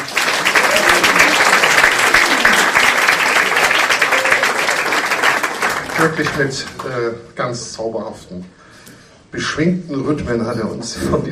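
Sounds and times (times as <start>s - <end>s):
crowd applauding: 0.0s - 7.0s
speech: 6.0s - 8.6s, 9.3s - 11.2s.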